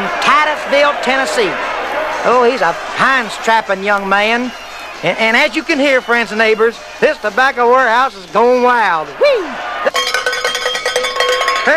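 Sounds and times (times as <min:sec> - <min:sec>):
speech: 0:00.6 - 0:09.7
boxing match starting bell: 0:09.9 - 0:11.7.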